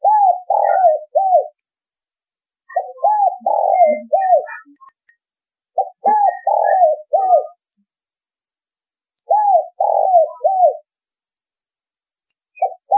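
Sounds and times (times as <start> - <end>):
spotted dove cooing: 0.0 - 1.6, 2.7 - 4.8, 5.8 - 7.6, 9.3 - 10.9, 12.6 - 12.9.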